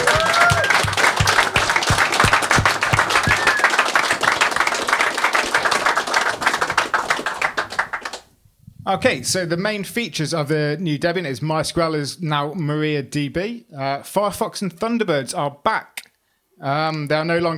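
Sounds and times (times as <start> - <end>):
audience applause: 0.0 - 8.3
speech: 8.9 - 16.0, 16.6 - 17.5.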